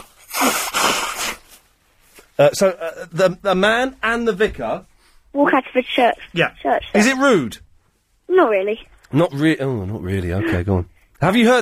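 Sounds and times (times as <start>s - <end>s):
nose blowing: 0.0s - 1.7s
speech: 2.4s - 7.6s, 8.3s - 11.6s.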